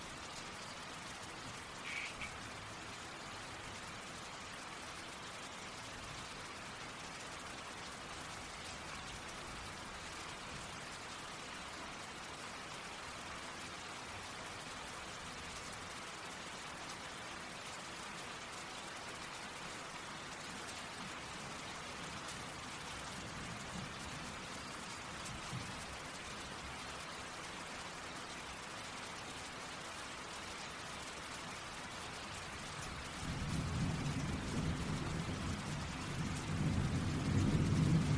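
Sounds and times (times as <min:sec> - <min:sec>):
raindrops pattering: 0:00.0 - 0:38.1
thunder rumble: 0:33.4 - 0:38.1.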